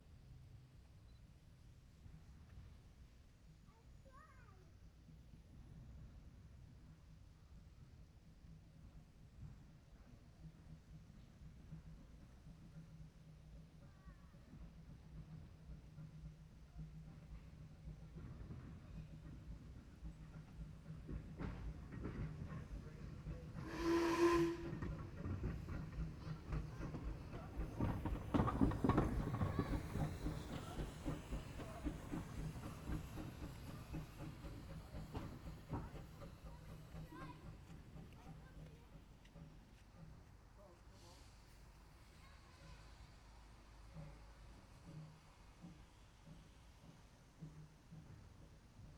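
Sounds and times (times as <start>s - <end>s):
steam train passing by: 0.0s - 48.9s.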